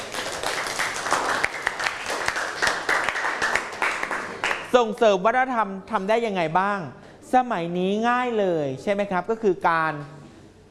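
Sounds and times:
audience applause: 0.0s - 4.7s
speech: 4.7s - 10.2s.

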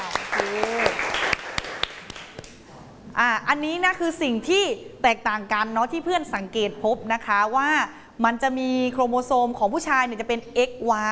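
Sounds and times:
classroom applause: 0.0s - 2.6s
speech: 3.2s - 11.1s.

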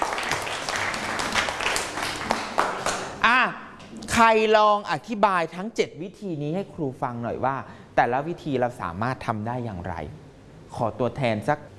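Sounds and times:
classroom clapping: 0.0s - 3.2s
speech: 4.2s - 11.7s.

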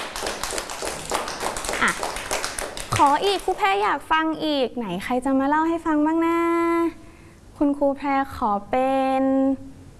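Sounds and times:
children clapping hands: 0.0s - 3.7s
speech: 1.8s - 2.1s, 3.0s - 7.0s, 7.6s - 9.7s.

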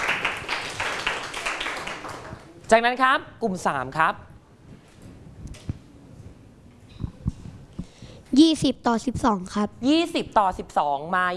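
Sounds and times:
classroom applause for a student: 0.0s - 2.6s
speech: 2.7s - 4.3s, 8.4s - 11.3s.

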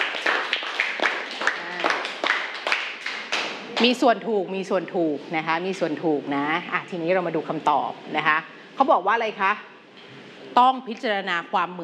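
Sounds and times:
classroom clapping for a classmate: 0.0s - 3.9s
speech: 3.8s - 9.7s, 10.6s - 11.8s.

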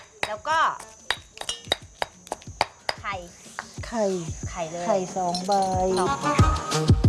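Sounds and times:
pounding curry paste in a mortar: 0.0s - 3.8s
speech: 0.3s - 1.0s, 3.0s - 7.0s.

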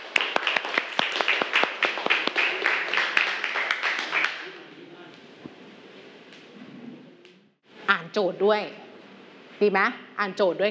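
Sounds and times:
classroom clapping: 0.0s - 4.7s
speech: 8.2s - 8.8s, 9.6s - 10.7s.

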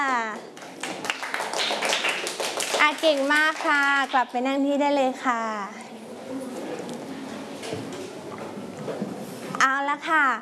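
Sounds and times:
children clapping: 0.3s - 4.2s
speech: 2.8s - 5.8s, 9.6s - 10.4s.

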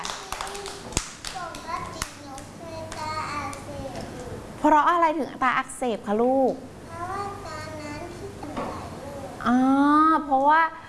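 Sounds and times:
children clapping: 0.0s - 3.7s
speech: 4.6s - 6.7s, 9.5s - 10.8s.

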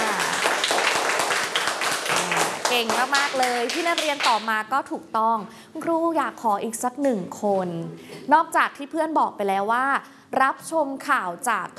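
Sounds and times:
students in a classroom clapping for a classmate: 0.0s - 4.5s
speech: 2.8s - 11.7s.

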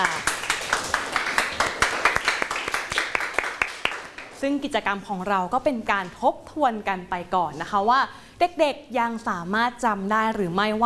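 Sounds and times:
hand claps: 0.0s - 4.4s
speech: 4.4s - 10.8s.

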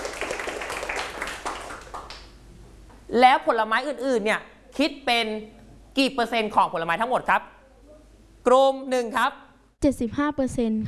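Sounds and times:
classroom clapping: 0.0s - 2.4s
speech: 3.1s - 7.6s, 8.4s - 10.8s.

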